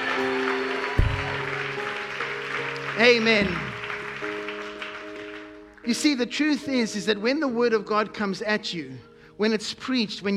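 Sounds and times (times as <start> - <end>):
audience clapping: 0.0 - 5.9
speech: 3.0 - 3.7, 5.8 - 10.3.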